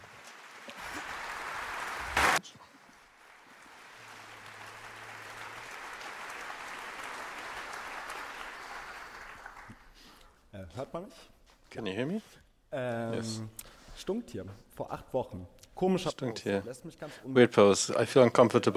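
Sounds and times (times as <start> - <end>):
crowd applause: 0.0 - 10.2
speech: 10.6 - 18.7.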